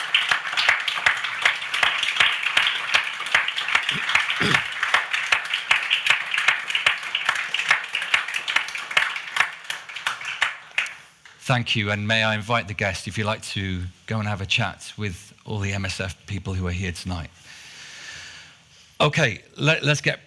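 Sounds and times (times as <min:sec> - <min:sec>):
audience applause for the MSF team: 0:00.0 - 0:11.0
speech: 0:11.5 - 0:17.6, 0:19.0 - 0:20.2.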